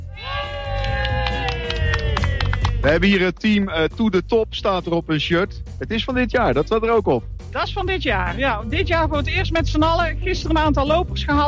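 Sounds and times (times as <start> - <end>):
team cheering loudly: 0.0 - 3.0
scattered sharp claps or shouts: 0.4 - 2.9
speech: 2.8 - 11.4.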